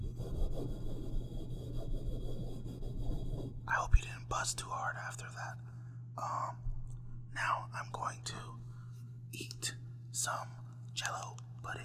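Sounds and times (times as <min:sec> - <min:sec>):
microphone being scratched: 0:00.0 - 0:04.5
speech: 0:03.9 - 0:06.7, 0:07.4 - 0:08.6, 0:09.3 - 0:11.8.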